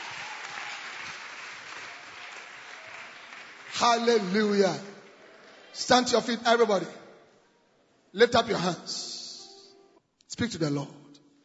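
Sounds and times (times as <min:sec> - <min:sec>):
audience clapping hands: 0:00.0 - 0:05.8
speech: 0:03.8 - 0:04.9, 0:05.8 - 0:07.0, 0:08.1 - 0:09.1, 0:10.4 - 0:11.0.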